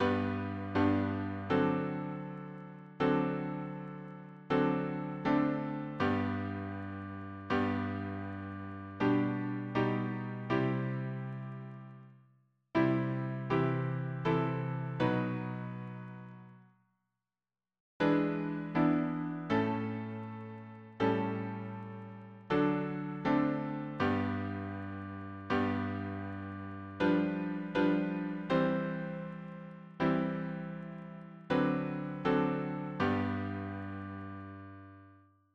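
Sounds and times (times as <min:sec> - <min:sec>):
piano harmony: 0:00.0 - 0:12.0, 0:12.8 - 0:16.5, 0:18.0 - 0:35.1.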